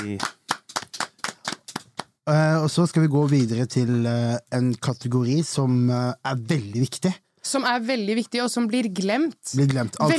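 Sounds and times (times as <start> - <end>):
speech: 0.0 - 0.4, 2.3 - 10.1
sharp hand claps: 0.0 - 2.2.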